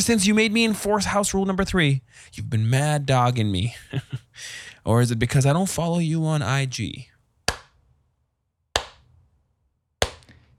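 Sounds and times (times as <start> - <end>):
speech: 0.0 - 7.1
laughter: 3.7 - 4.5
slow hand clapping: 8.8 - 9.0, 10.0 - 10.4.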